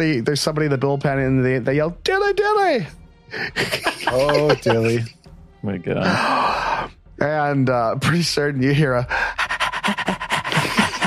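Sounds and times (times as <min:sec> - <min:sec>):
speech: 0:00.0 - 0:10.3
laughter: 0:03.4 - 0:05.1, 0:09.9 - 0:11.0
small dog panting: 0:09.2 - 0:11.0.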